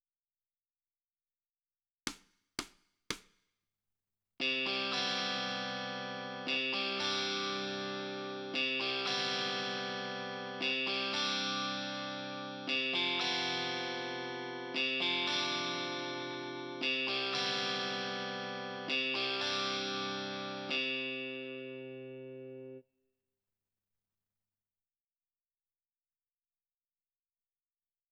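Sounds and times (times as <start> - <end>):
guitar: 4.4 - 22.8.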